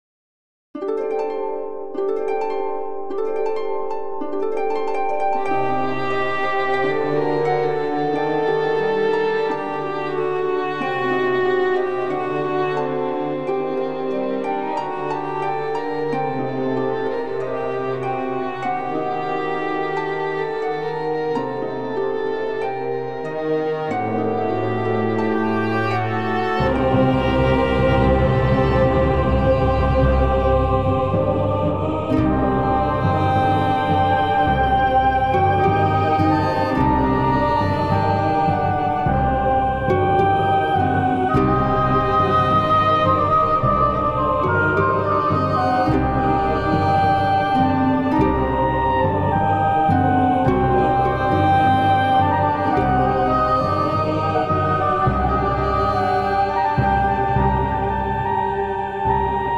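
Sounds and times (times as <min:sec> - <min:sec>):
prelude: 0:00.8 - 0:59.5.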